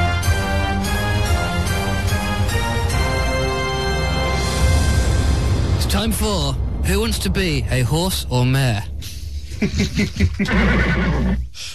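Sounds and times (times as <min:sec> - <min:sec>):
upbeat quiz theme music jingle: 0:00.0 - 0:07.6
speech: 0:06.0 - 0:08.9, 0:09.6 - 0:11.7
laughter: 0:09.3 - 0:10.8.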